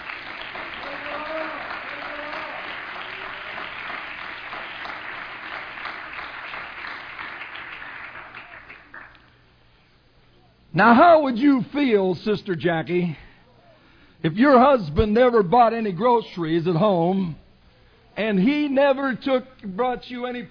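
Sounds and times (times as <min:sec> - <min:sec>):
crowd applause: 0:00.0 - 0:09.3
speech: 0:10.8 - 0:13.2, 0:14.2 - 0:17.4, 0:18.2 - 0:20.4.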